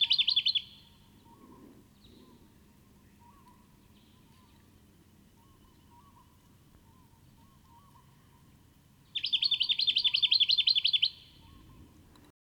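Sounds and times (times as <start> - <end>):
Microeca fascinans Jacky Winter calling: 0.0 - 12.0.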